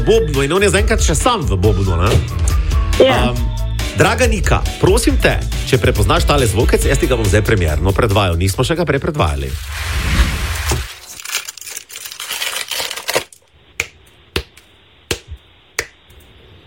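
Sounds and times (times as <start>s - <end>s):
speech: 0.0s - 10.8s
chocolate bar foil wrapper rustling: 9.4s - 13.5s
chocolate bar pieces snapping as broken off: 11.1s - 16.0s.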